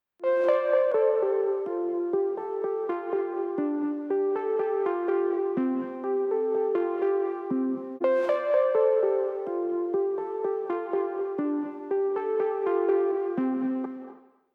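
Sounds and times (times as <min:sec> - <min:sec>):
lead melody: 0:00.3 - 0:14.2.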